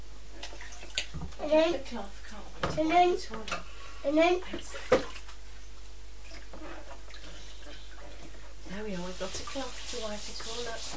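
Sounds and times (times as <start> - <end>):
bath water splashing over the side of a tub: 0.3 - 1.2, 4.4 - 5.4, 6.2 - 10.9
child talking: 1.4 - 4.6, 9.5 - 10.9
speech: 1.5 - 5.0, 8.8 - 10.9.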